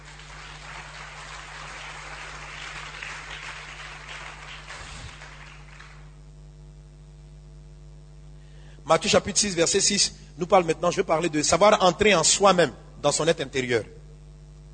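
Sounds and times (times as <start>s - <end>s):
congregation applauding to acclaim the Lord in a French-language church service: 0.0s - 6.2s
constant low electrical hum: 0.0s - 14.7s
speech: 8.9s - 14.0s.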